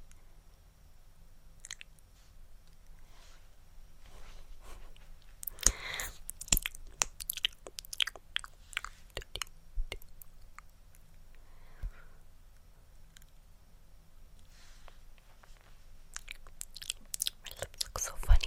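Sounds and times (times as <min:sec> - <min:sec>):
lip smacks, clicks and wet mouth pops: 0:01.6 - 0:02.0, 0:05.4 - 0:11.3, 0:16.1 - 0:18.4.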